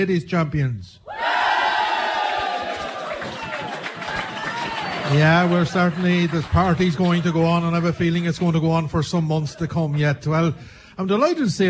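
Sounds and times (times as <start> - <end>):
speech: 0.0 - 1.1, 5.1 - 11.6
crowd giving a loud cheer: 1.1 - 8.2.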